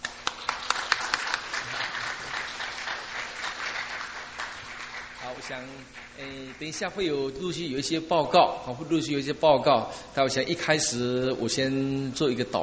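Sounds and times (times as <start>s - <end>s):
audience applause: 0.0s - 6.2s
speech: 5.4s - 12.6s.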